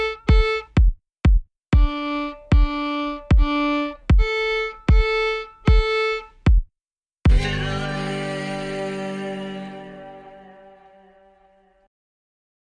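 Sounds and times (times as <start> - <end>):
fiddle string crossing triplets from D to A: 0.0 - 0.8, 1.8 - 6.5, 7.3 - 11.7.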